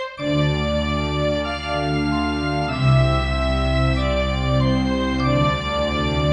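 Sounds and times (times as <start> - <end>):
documentary movie music: 0.2 - 6.3.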